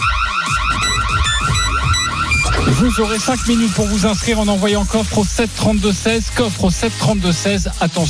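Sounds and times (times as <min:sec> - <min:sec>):
electronic alert jingle for a radio cash giveaway: 0:00.2 - 0:04.5
speech: 0:02.7 - 0:08.0.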